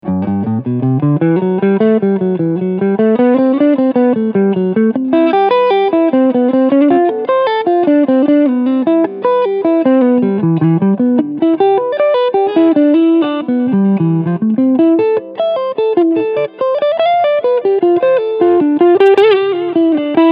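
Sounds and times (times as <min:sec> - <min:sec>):
Framus Stormbender electric guitar clean sound on front humbucker: 0:00.0 - 0:20.3.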